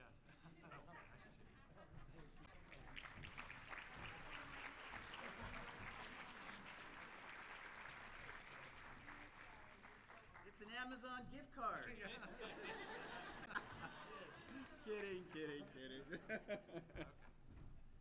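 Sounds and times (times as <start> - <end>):
laughter: 0.2 - 2.5, 11.9 - 17.4
audience applause: 2.5 - 10.6, 12.7 - 16.0
speech: 10.6 - 13.2, 14.9 - 17.1.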